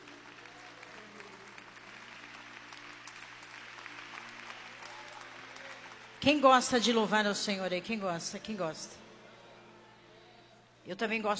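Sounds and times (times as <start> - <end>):
audience applauding: 0.0 - 6.4
speech: 6.2 - 9.0, 10.9 - 11.3.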